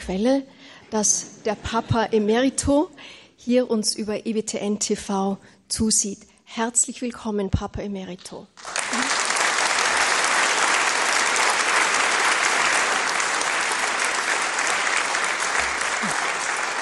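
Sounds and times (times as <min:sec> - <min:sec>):
speech: 0:00.0 - 0:09.1
strong applause from audience: 0:08.6 - 0:16.8.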